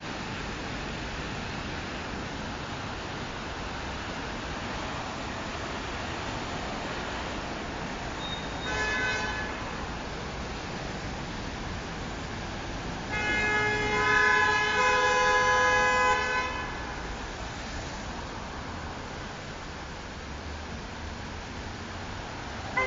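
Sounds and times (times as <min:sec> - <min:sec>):
rain under the expressway in New York: 0:00.0 - 0:22.8
traffic under the expressway in New York: 0:00.0 - 0:22.8
car horns under the expressway in New York: 0:08.2 - 0:09.8, 0:13.1 - 0:17.0.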